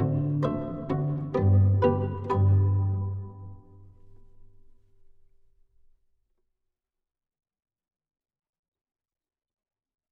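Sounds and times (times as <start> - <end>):
slow pizzicato polka backing track: 0.0 - 4.1.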